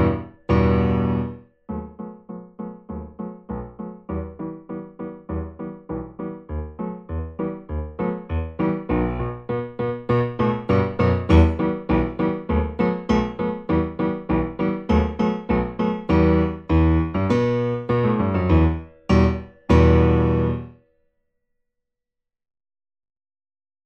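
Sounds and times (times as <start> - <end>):
secondo part of a four-hand piano practice piece: 0.0 - 20.8.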